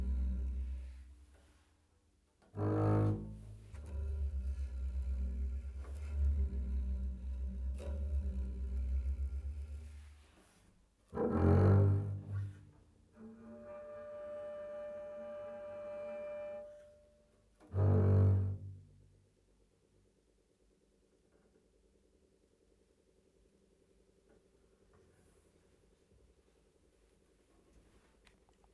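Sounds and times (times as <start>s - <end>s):
double bass: 0.0s - 1.4s, 2.5s - 19.1s.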